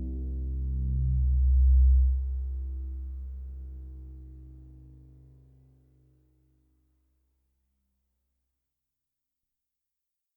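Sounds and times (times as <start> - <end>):
Arturia MatrixBrute synthesizer: 0.0 - 4.9.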